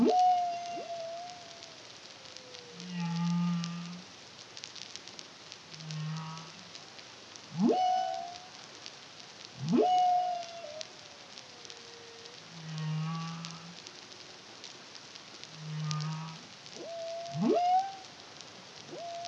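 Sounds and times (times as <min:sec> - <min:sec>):
humpback whale song: 0:00.0 - 0:04.0, 0:07.5 - 0:08.6, 0:09.6 - 0:13.8, 0:15.5 - 0:18.1, 0:18.9 - 0:19.2
crackling sea noise: 0:00.0 - 0:19.2.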